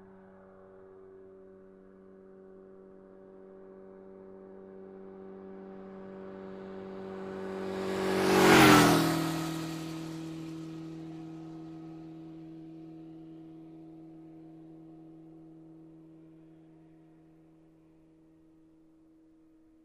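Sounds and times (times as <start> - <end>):
motorcycle passing by quickly: 2.8 - 18.3.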